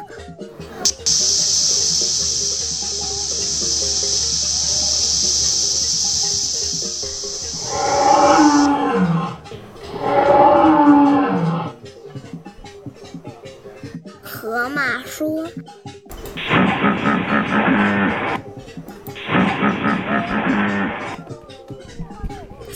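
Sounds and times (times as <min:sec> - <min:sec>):
steady hiss: 0:00.6 - 0:11.1, 0:16.1 - 0:21.2
lion roaring: 0:07.6 - 0:11.8.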